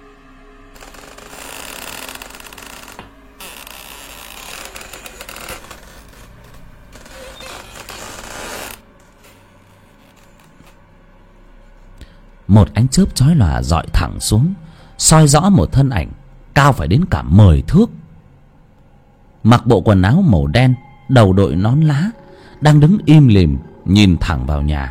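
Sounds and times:
low quiet hum: 0.0 - 24.8
rusty door hinge creaking: 0.8 - 8.9
speech: 12.5 - 18.0, 19.4 - 24.8.

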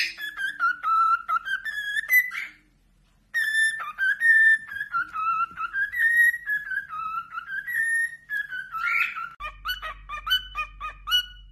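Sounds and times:
cockatiel whistling: 0.0 - 2.7, 3.3 - 11.4
low steady hum: 0.0 - 11.4.

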